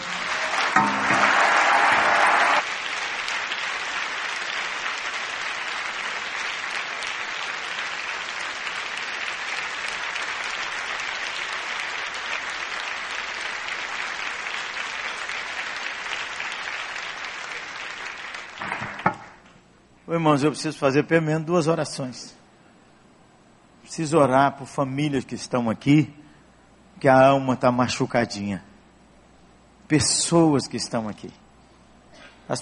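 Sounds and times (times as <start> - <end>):
audience applauding in gratitude: 0.0 - 19.1
speech: 20.1 - 22.4, 24.0 - 26.2, 27.0 - 28.7, 29.9 - 31.4.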